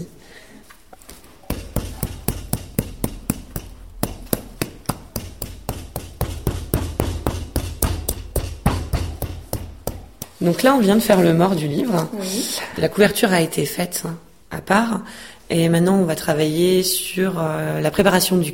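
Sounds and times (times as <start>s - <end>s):
hammer rounding spine of book sections: 1.4s - 10.4s
speech: 10.4s - 18.5s.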